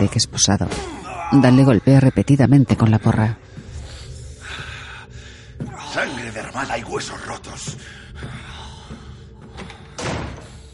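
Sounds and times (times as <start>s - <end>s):
speech: 0.0s - 3.4s, 6.4s - 8.5s
door slamming shut: 10.0s - 10.5s.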